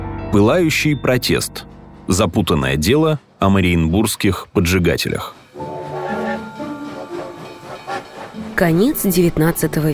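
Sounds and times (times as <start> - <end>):
speech: 0.3 - 5.7, 8.6 - 9.9
late 19th-century train from Riga pulling away and gaining speed: 2.0 - 9.9.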